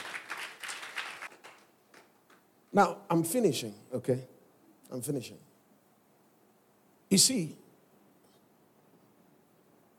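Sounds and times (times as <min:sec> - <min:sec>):
audience clapping: 0:00.0 - 0:02.5
speech: 0:02.7 - 0:05.5, 0:07.1 - 0:07.6.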